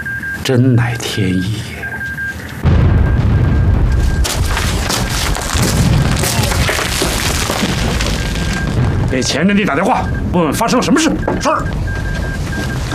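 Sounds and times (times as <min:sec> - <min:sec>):
speech: 0:00.5 - 0:01.8, 0:09.1 - 0:12.0
rumbling and crackling debris: 0:02.5 - 0:12.9
explosion: 0:02.6 - 0:12.9.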